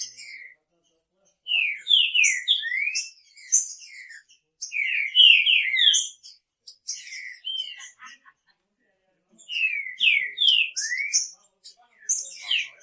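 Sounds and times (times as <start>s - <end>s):
Green-winged Saltator song of clear slurred whistles and sharper high notes: 1.5s - 7.7s, 9.5s - 11.3s
laughter: 7.4s - 8.9s.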